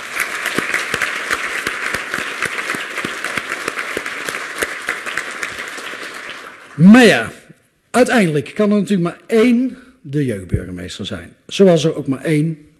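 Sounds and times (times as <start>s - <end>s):
audience applause: 0.0s - 7.2s
speech: 6.8s - 7.4s, 8.0s - 12.7s.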